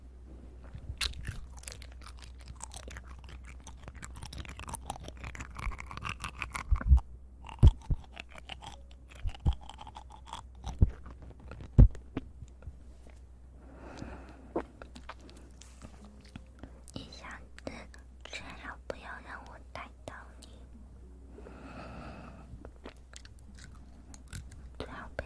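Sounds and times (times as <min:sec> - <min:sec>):
constant low hum: 0:00.0 - 0:25.2
wet chewing, smacking and crunching: 0:00.6 - 0:13.2, 0:14.0 - 0:17.0, 0:22.6 - 0:25.2.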